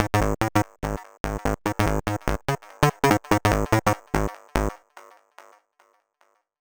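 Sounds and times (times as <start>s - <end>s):
nu dance electro jam bass line at 145 bpm: 0.0s - 4.7s.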